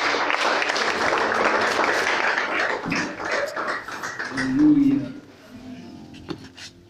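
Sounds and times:
audience applauding: 0.0 - 5.2.

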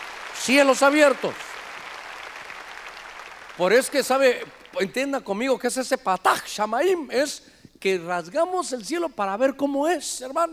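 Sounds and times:
audience clapping loudly: 0.0 - 5.0
speech: 0.5 - 1.5, 3.6 - 10.5.

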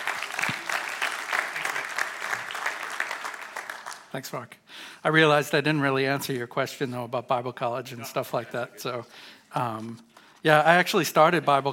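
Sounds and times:
audience applause: 0.0 - 4.1
speech: 4.1 - 11.7.

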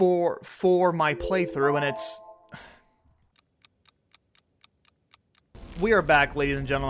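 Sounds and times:
speech: 0.0 - 2.7, 5.8 - 6.8
timer chiming: 1.0 - 2.8.

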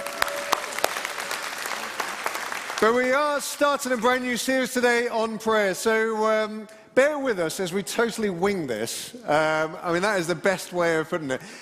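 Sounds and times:
round of applause: 0.0 - 3.4
speech: 2.8 - 11.6.

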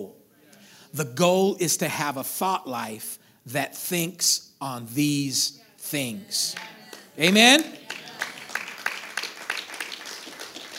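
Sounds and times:
speech: 0.0 - 0.2, 0.9 - 7.8
weak applause from church audience: 6.4 - 10.7.

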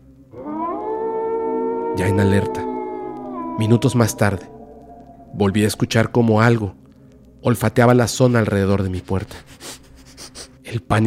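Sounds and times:
loud howl: 0.3 - 6.9
speech: 2.0 - 2.7, 3.6 - 4.6, 5.3 - 6.8, 7.4 - 9.6, 10.7 - 11.0
low rumble: 2.5 - 9.2.

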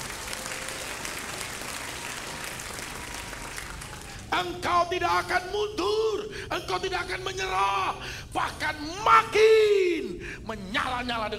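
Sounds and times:
crowd applause: 0.0 - 4.3
speech: 4.3 - 11.3.

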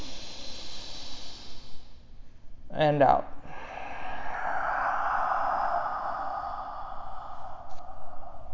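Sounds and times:
long deep inhale during a breathing exercise: 0.0 - 2.5, 3.4 - 8.5
speech: 2.8 - 3.3.

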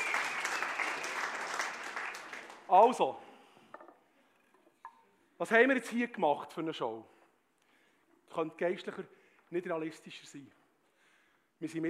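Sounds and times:
audience applause: 0.0 - 3.0
speech: 2.7 - 3.3, 5.4 - 7.2, 8.3 - 10.6, 11.6 - 11.8.

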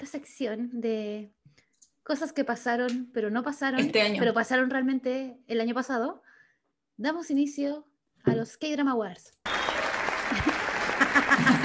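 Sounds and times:
speech: 0.1 - 1.4, 2.1 - 6.3, 7.0 - 9.7
applause sound effect: 9.4 - 11.6
laughter: 9.8 - 11.6.

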